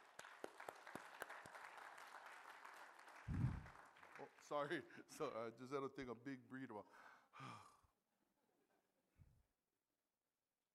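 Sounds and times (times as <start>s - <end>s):
audience clapping: 0.0s - 4.9s
speech: 4.2s - 7.7s.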